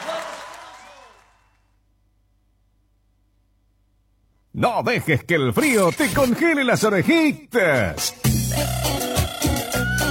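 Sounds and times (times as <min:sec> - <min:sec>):
applause: 0:00.0 - 0:01.8
speech: 0:04.6 - 0:09.1.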